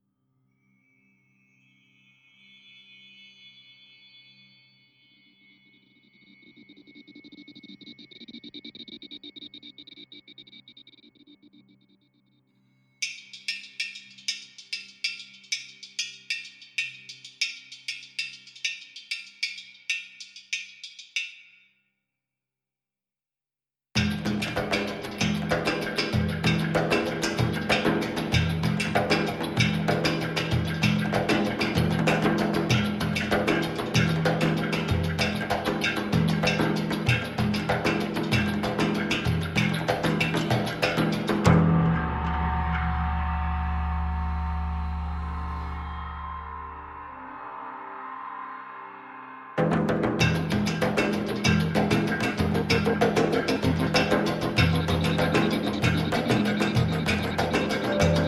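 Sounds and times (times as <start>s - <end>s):
small percussion: 13.0s - 21.8s, 24.0s - 46.6s, 49.6s - 58.2s.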